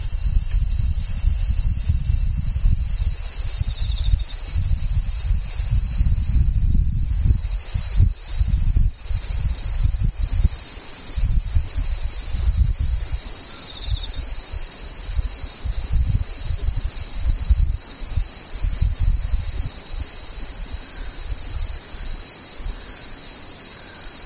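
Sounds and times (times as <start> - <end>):
low rumbling wind-like noise: 0.0 - 22.9
insects trilling: 0.0 - 24.2.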